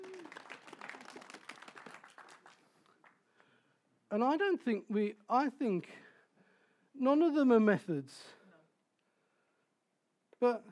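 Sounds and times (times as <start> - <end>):
audience applause: 0.0 - 3.1
speech: 4.1 - 6.0, 7.0 - 8.4, 10.4 - 10.7.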